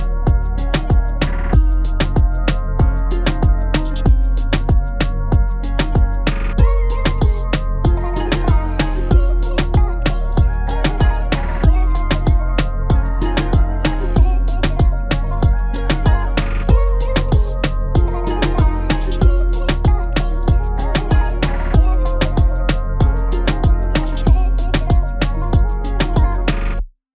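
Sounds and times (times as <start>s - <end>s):
Latin melody loop at 95 BPM: 0.0s - 26.8s.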